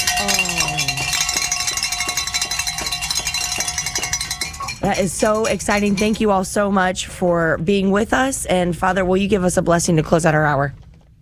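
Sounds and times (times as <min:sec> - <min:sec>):
low tone: 0:00.0 - 0:06.4
bell ringing to celebrate goal: 0:00.0 - 0:06.5
speech: 0:04.8 - 0:10.8.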